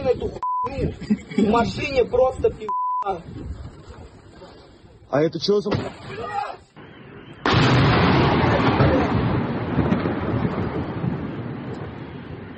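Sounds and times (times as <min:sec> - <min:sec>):
speech: 0:00.1 - 0:03.6, 0:05.1 - 0:06.6
laughter: 0:00.8 - 0:01.8
downed drone exploding on a house: 0:06.8 - 0:12.5.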